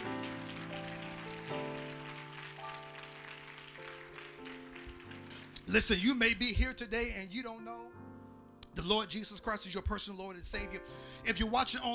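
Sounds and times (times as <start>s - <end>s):
audience clapping hands: 0.0s - 5.8s
speech: 5.7s - 7.8s, 8.8s - 11.9s.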